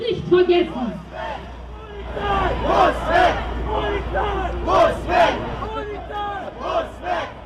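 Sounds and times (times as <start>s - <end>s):
speech: 0.1s - 1.5s
hundreds of protesters shouting outside police station: 0.7s - 7.4s.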